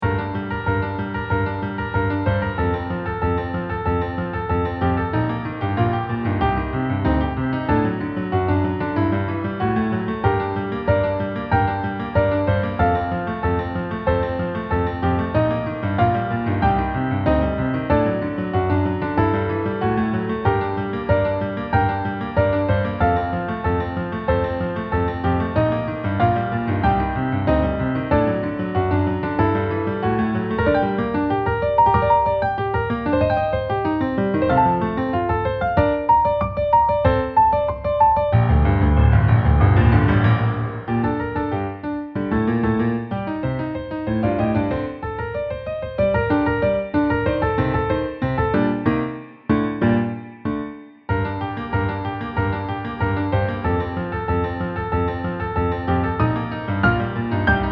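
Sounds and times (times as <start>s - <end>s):
piano: 0.0s - 57.7s.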